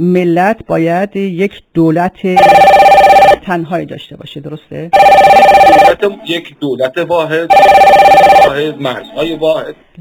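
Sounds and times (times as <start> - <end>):
speech: 0.0 - 9.9
telephone ringing in a radio studio: 2.4 - 3.4, 5.0 - 6.1, 7.5 - 8.7.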